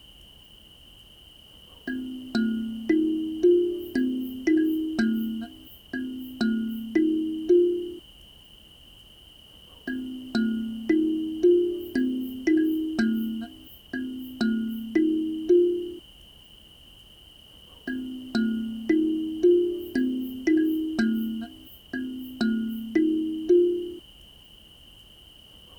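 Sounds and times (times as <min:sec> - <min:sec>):
forest ambience loop: 0:01.9 - 0:08.0, 0:09.9 - 0:16.0, 0:17.9 - 0:24.0.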